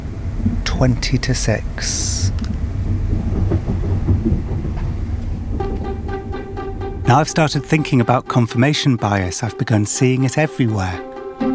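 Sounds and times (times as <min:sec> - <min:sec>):
train pulling into station: 0:00.0 - 0:11.5
speech: 0:00.4 - 0:02.6, 0:07.1 - 0:11.1.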